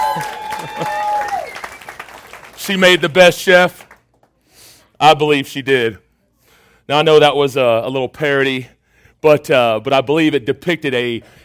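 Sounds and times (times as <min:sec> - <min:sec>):
person cheering: 0:00.0 - 0:01.7
audience applause at a competition: 0:00.0 - 0:04.1
speech: 0:00.2 - 0:00.9, 0:02.7 - 0:03.8, 0:05.0 - 0:06.0, 0:06.9 - 0:11.4.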